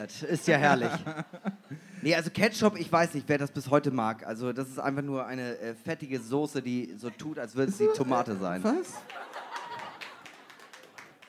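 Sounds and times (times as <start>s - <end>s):
laughter: 0.0s - 2.0s, 6.2s - 11.2s
speech: 0.0s - 9.3s
people clapping: 8.4s - 11.2s.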